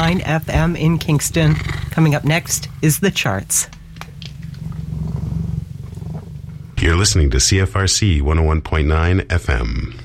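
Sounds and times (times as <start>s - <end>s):
cat purring: 0.0s - 7.5s
speech: 0.1s - 3.8s, 6.8s - 10.0s.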